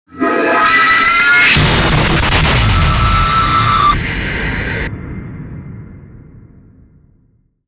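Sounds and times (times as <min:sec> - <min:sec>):
rising tension build: 0:00.1 - 0:06.4
impact hit: 0:00.9 - 0:07.0.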